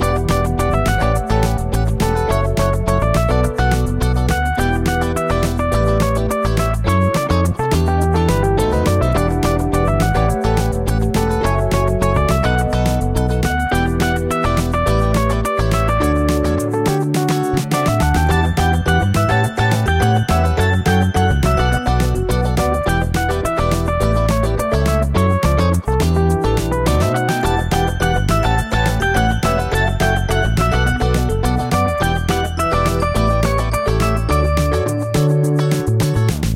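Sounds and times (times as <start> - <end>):
background music: 0.0 - 36.5.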